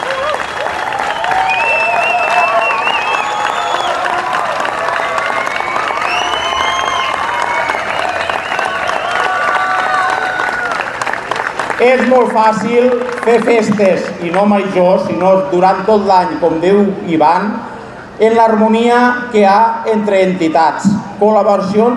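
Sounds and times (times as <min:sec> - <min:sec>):
shouts and cheers: 0:00.0 - 0:10.9
audience applause: 0:00.0 - 0:14.5
speech: 0:11.8 - 0:21.9.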